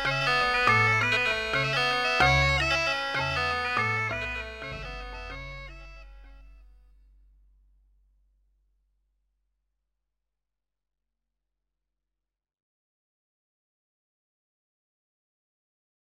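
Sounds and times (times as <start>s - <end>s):
bassoon prime harmonics: 0.0s - 6.8s.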